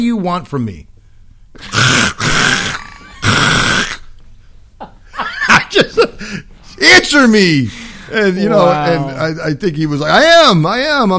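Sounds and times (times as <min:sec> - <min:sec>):
speech: 0:00.0 - 0:00.9, 0:01.5 - 0:02.1, 0:05.9 - 0:11.1
person imitating a screaming squirrel: 0:01.6 - 0:04.0.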